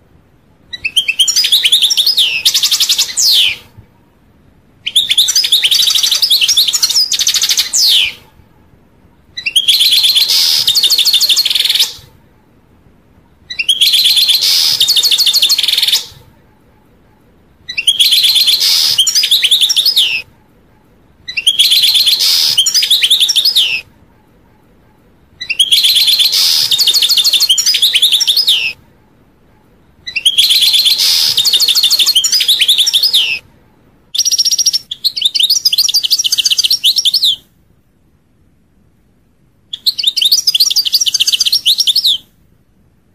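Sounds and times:
faint hiss: 0.0s - 43.1s
European goldfinch twittering song: 0.7s - 3.7s, 4.8s - 8.2s, 9.4s - 12.0s, 13.4s - 16.2s, 17.7s - 20.2s, 21.2s - 23.8s, 25.4s - 28.8s, 30.1s - 33.4s, 34.1s - 37.4s, 39.7s - 42.3s.

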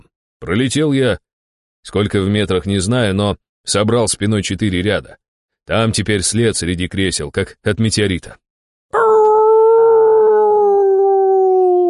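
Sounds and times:
speech: 0.4s - 1.2s, 1.8s - 8.4s
circus animal howling: 9.0s - 11.8s.

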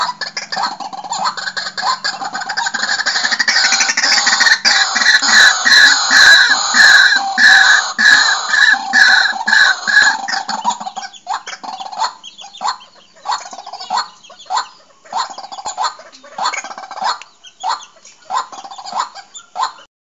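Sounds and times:
bird calling in harsh clucking bursts: 0.0s - 19.9s.

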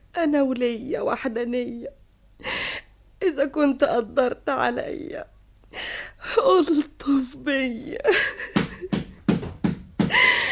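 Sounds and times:
speech: 0.2s - 2.5s, 3.2s - 9.0s
loud knocking on a door: 8.5s - 10.2s.

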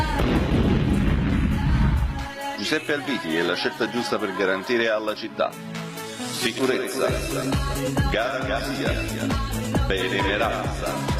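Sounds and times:
Vesuvius volcanic eruption explosion sound effect: 0.2s - 2.3s
speech: 2.7s - 5.8s, 6.4s - 11.1s.

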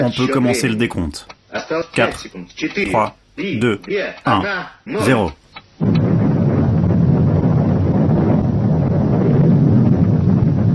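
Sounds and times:
speech: 0.0s - 6.0s
explosion blasting earth out of the ground: 5.8s - 10.7s.

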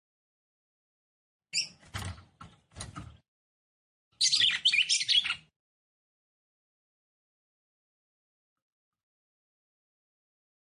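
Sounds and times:
Red-cowled cardinal song of squeaky twittering notes: 4.2s - 5.5s.

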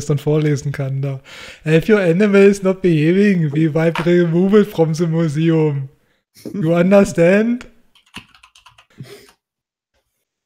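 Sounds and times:
speech: 0.0s - 7.7s
typing on a computer keyboard: 8.0s - 8.9s.

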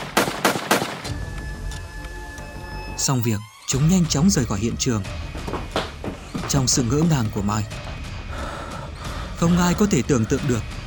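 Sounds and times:
repeated gunshot sound effect: 0.0s - 1.1s
speech: 3.0s - 5.8s, 6.5s - 7.9s, 9.4s - 10.8s.

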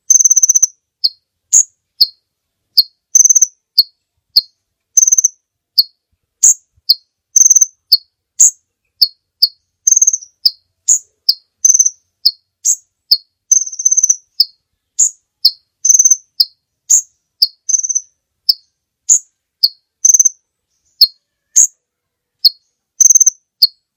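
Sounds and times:
bird giving buzzy chattering bursts: 0.0s - 2.2s, 2.8s - 21.8s, 22.4s - 23.9s.

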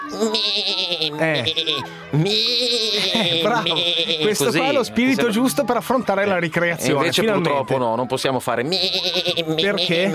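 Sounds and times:
person imitating sheep bleating: 0.0s - 4.8s, 8.7s - 10.1s
laughter: 0.0s - 7.7s, 8.8s - 10.1s
speech: 0.1s - 10.1s.

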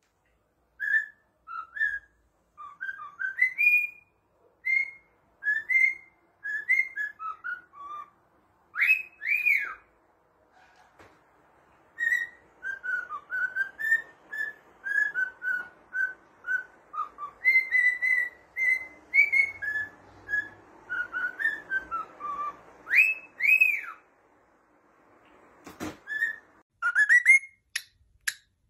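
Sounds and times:
cockatiel whistling: 0.8s - 9.9s, 12.0s - 24.1s, 25.8s - 27.6s.

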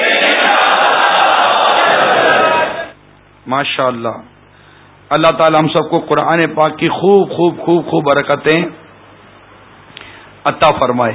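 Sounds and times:
large crowd shouting Inshallah in unison at a religious gathering: 0.0s - 2.9s
speech: 3.5s - 4.3s, 5.1s - 8.8s, 10.4s - 11.1s.

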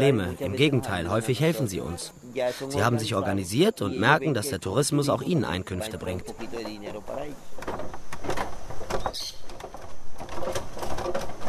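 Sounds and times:
voices: 0.0s - 7.4s
speech: 0.0s - 8.0s
wooden suspension bridge creaking and groaning: 5.4s - 11.4s.

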